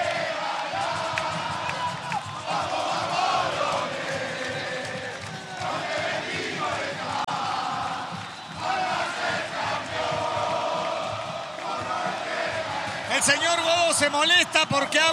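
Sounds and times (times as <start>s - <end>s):
football fans shouting and chanting in stadium: 0.0s - 15.1s
speech: 13.2s - 15.1s.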